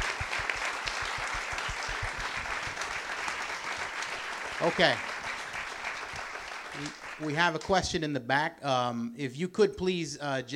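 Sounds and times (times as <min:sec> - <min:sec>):
crowd applause: 0:00.0 - 0:07.9
speech: 0:04.6 - 0:05.1, 0:06.8 - 0:10.5.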